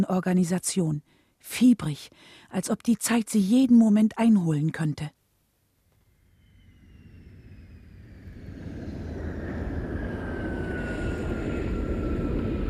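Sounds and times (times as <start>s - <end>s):
speech: 0.0s - 5.2s
airplane arriving: 6.0s - 12.6s.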